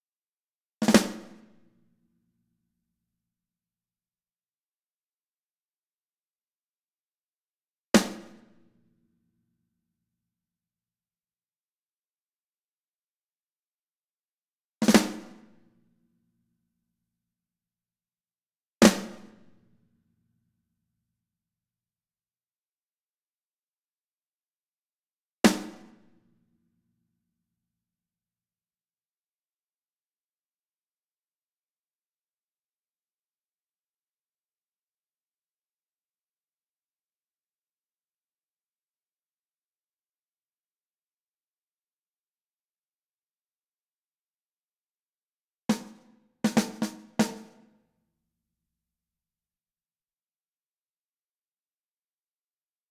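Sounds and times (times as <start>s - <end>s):
snare drum: 0.8s - 1.5s, 8.0s - 8.5s, 14.8s - 15.5s, 18.8s - 19.4s, 25.5s - 26.0s, 45.7s - 47.7s.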